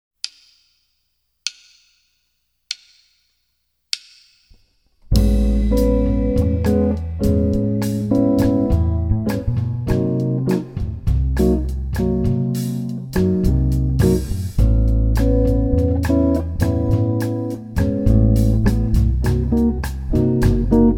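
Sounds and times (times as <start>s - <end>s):
musical vamp: 5.1s - 20.9s.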